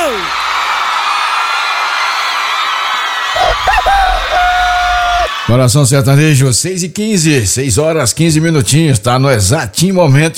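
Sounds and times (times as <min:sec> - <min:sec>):
crowd applause: 0:00.0 - 0:05.5
speech: 0:05.5 - 0:10.3.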